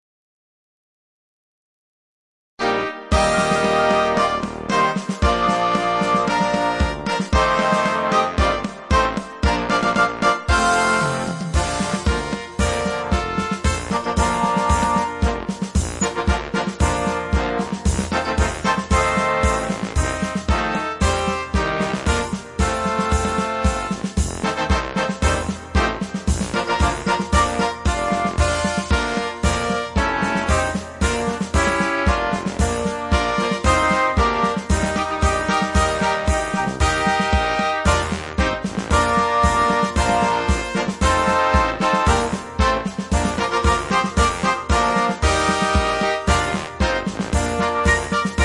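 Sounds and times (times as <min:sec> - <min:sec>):
instrumental carnival music: 0:02.6 - 0:48.4.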